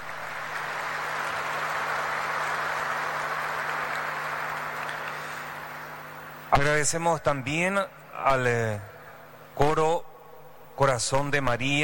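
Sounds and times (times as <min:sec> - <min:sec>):
audience applause: 0:00.0 - 0:06.1
faint low hum: 0:00.0 - 0:11.8
speech: 0:06.5 - 0:08.9, 0:09.6 - 0:10.1, 0:10.8 - 0:11.8.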